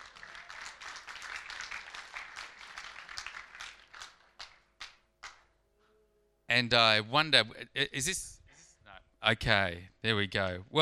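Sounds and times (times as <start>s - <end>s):
audience round of applause: 0.0s - 4.6s
speech: 6.5s - 8.4s, 9.3s - 10.8s.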